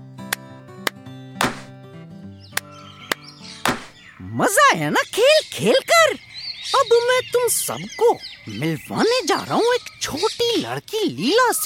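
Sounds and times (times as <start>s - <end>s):
foot stomp: 0.3s - 1.7s, 3.6s - 4.0s
hand claps: 0.3s - 1.7s
speech: 4.2s - 11.6s.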